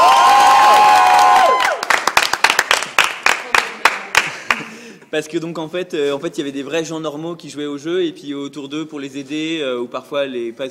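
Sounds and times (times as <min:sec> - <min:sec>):
audience applause: 0:00.0 - 0:04.7
speech: 0:05.2 - 0:10.6.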